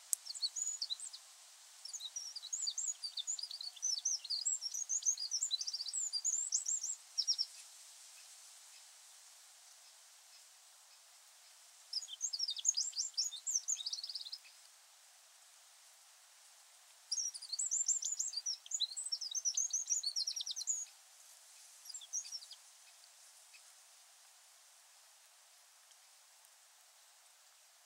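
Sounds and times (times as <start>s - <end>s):
Eurasian wren song: 0.1s - 8.9s, 9.8s - 14.7s, 16.8s - 23.8s.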